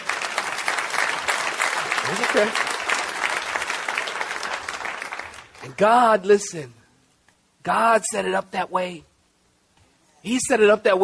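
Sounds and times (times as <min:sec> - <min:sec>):
audience applause: 0:00.0 - 0:05.8
speech: 0:02.1 - 0:02.7, 0:05.6 - 0:06.8, 0:07.6 - 0:09.1, 0:10.2 - 0:11.0.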